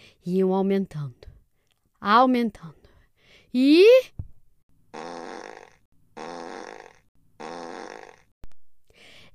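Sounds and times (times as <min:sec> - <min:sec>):
speech: 0:00.2 - 0:01.3, 0:02.0 - 0:02.8, 0:03.5 - 0:04.2
loud buzzy fart sound effect: 0:04.9 - 0:08.3.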